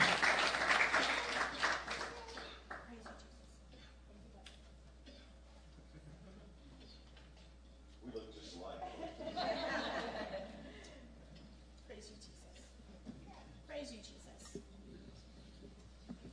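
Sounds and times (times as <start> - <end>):
audience clapping to welcome a speaker at a church service: 0.0 - 3.2
laughter: 5.6 - 6.8, 8.8 - 11.2.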